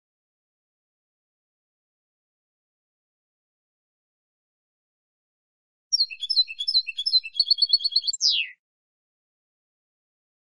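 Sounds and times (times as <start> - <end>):
European goldfinch song: 5.9 - 8.6.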